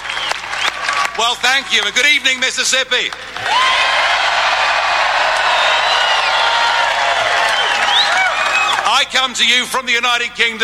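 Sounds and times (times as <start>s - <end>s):
large crowd cheering wildly: 0.0s - 2.0s, 3.2s - 9.1s
speech: 1.2s - 3.8s, 9.0s - 10.6s.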